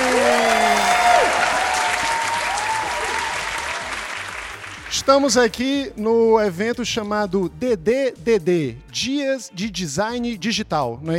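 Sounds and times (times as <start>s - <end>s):
audience applause: 0.0s - 5.0s
speech: 5.0s - 11.1s.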